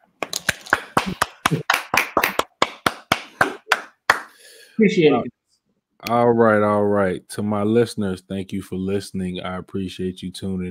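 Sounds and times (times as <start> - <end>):
audience hand claps: 0.2 - 4.4
speech: 1.0 - 1.8, 4.8 - 5.4, 6.0 - 10.7.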